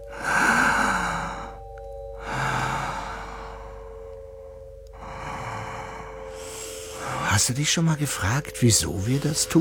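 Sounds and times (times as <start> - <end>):
deep breathing in and out: 0.0 - 7.4
speech: 7.4 - 9.5.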